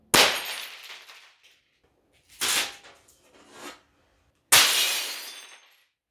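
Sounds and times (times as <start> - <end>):
glass breaking: 0.2 - 1.2, 4.6 - 5.7.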